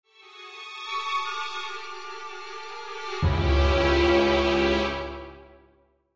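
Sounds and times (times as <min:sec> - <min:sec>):
dissonant orchestral accent: 0:03.0 - 0:05.6.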